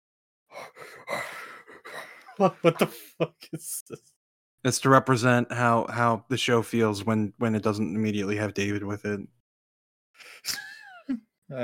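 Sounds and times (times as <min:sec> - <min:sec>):
heavy breathing in a Doctor Who episode: 0:00.5 - 0:03.2
laughter: 0:00.8 - 0:04.0, 0:10.2 - 0:11.2
speech: 0:02.4 - 0:09.4, 0:10.2 - 0:11.6.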